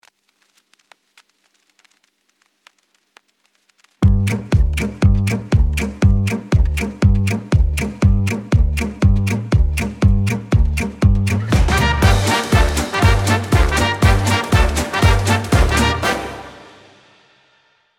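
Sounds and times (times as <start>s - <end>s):
music: 4.0s - 17.9s.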